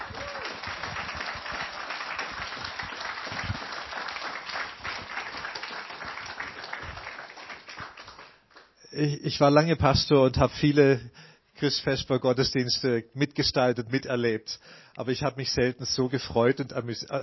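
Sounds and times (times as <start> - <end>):
audience applause: 0.0 - 8.7
speech: 9.0 - 17.2.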